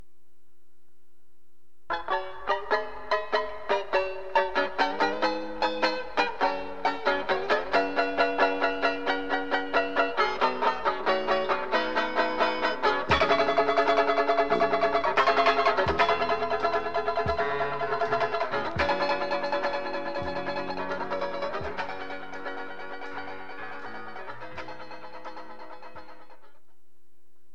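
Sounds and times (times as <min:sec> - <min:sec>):
banjo: 0:01.9 - 0:26.6.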